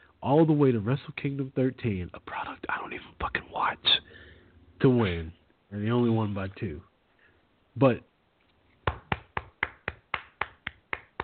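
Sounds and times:
speech: 0.2 - 4.2, 4.8 - 6.9, 7.8 - 8.1
hand clapping: 8.8 - 11.2.

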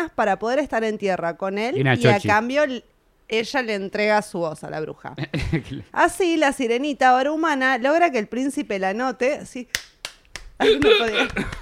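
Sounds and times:
speech: 0.0 - 9.9, 10.6 - 11.6
hand clapping: 9.7 - 11.6
laughter: 10.6 - 11.6.

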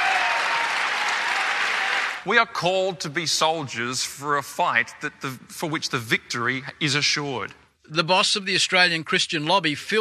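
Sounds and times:
standing ovation applause from large crowd: 0.0 - 2.2
speech: 2.2 - 9.9.

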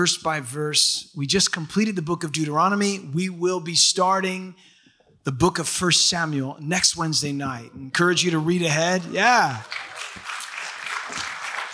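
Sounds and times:
speech: 0.0 - 10.0
audience clapping: 8.6 - 11.7.

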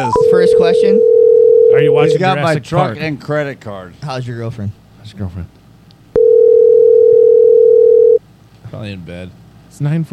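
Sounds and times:
speech: 0.0 - 5.6, 8.7 - 10.1
telephone dial tone: 1.0 - 1.8, 6.2 - 8.2.

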